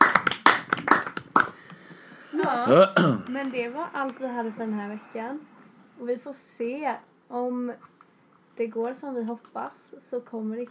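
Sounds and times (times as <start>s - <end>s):
hand clapping applause: 0.0s - 1.9s
speech: 2.5s - 7.9s, 8.6s - 10.6s.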